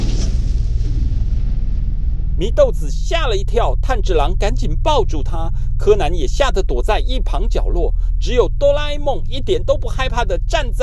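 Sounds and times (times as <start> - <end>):
rumbling thunder: 0.0 - 4.4
speech: 2.4 - 10.8.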